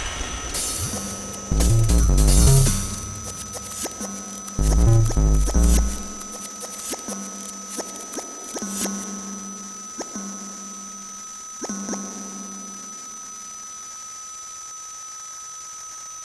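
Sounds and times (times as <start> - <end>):
Korg MS-20 synthesizer sequence: 0.6 - 8.1.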